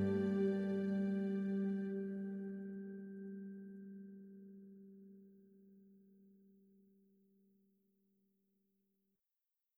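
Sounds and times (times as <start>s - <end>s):
reflective tender chimes: 0.0s - 4.5s.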